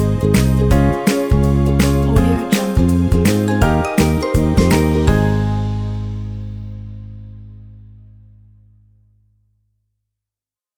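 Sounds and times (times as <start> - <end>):
cheerful acoustic ukulele music: 0.0 - 6.5.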